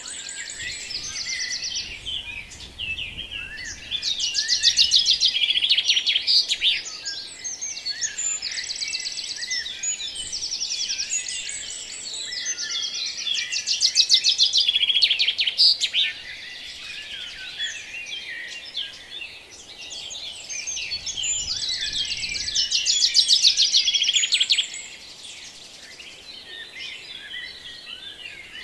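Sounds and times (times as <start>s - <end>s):
bird dawn chorus: 0.0s - 28.6s.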